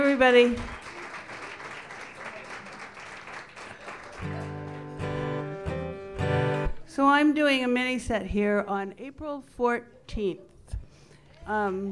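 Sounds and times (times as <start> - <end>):
audience applause welcoming a performer: 0.0 - 5.6
speech: 0.1 - 0.8, 7.0 - 10.5, 11.5 - 11.8.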